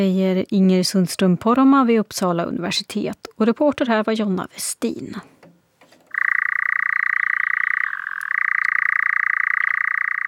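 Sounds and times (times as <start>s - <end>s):
speech: 0.0s - 5.3s
European nightjar churring call: 6.1s - 10.2s.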